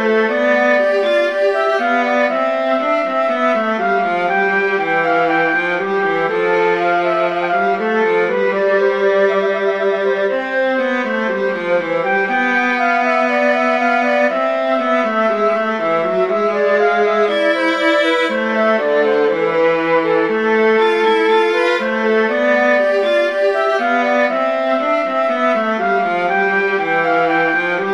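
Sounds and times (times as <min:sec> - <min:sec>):
march in a major key for flute and viola: 0:00.0 - 0:27.9.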